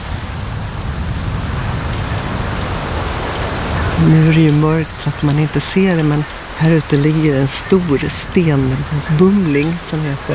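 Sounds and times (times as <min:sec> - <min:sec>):
gentle sea waves lapping against stones: 0:01.6 - 0:10.3
speech: 0:04.0 - 0:10.3.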